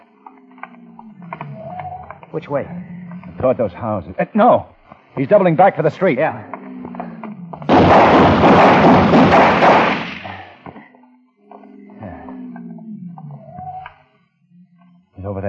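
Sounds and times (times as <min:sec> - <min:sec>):
speech: 0:02.3 - 0:06.5
gunfire from a gunman shooting at people: 0:07.7 - 0:10.7.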